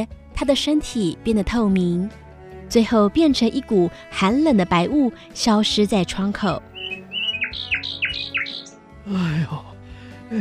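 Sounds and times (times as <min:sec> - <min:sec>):
speech: 0:00.0 - 0:06.7, 0:09.1 - 0:09.7
nightingale singing: 0:06.7 - 0:08.8.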